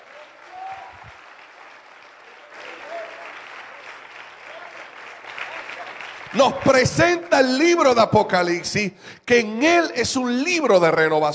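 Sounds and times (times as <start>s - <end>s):
audience applause: 0.0s - 7.4s
speech: 6.3s - 11.3s.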